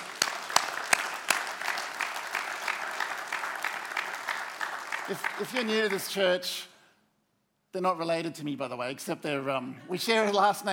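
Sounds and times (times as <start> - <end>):
audience clapping: 0.0 - 6.4
speech: 5.1 - 6.7, 7.7 - 10.7.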